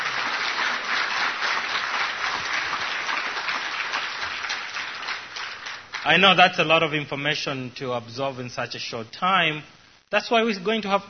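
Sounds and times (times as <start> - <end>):
audience applause: 0.0 - 6.4
speech: 6.0 - 11.0.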